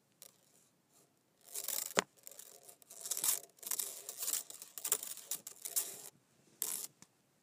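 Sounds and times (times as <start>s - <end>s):
metal chain clinking and rattling: 1.4s - 6.9s.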